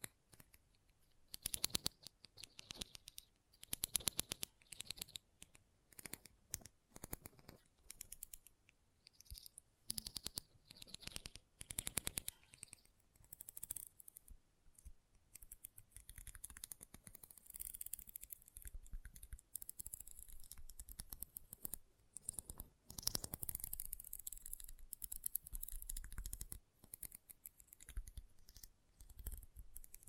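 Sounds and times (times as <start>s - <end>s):
rapid dense clicking and scratching taps: 0.0s - 30.0s.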